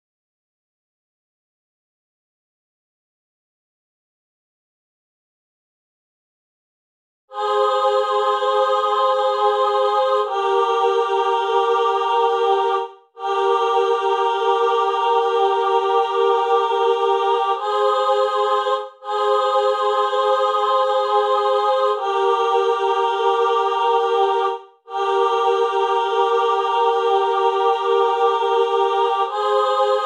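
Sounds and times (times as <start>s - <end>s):
female chamber choir singing: 7.3s - 30.0s.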